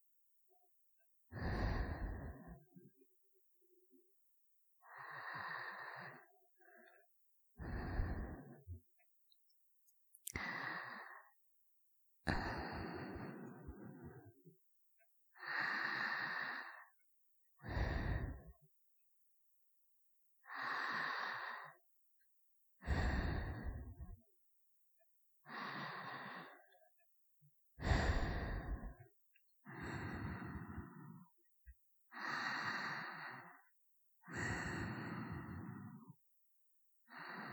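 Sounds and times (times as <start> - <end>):
person breathing in sleep: 1.3 - 2.8, 4.8 - 7.0, 7.6 - 8.8, 10.2 - 11.4, 12.3 - 14.4, 15.4 - 17.0, 17.6 - 18.6, 20.4 - 21.8, 22.8 - 24.2, 25.4 - 26.8, 27.8 - 29.0, 29.6 - 31.4, 32.1 - 36.2, 37.0 - 37.5.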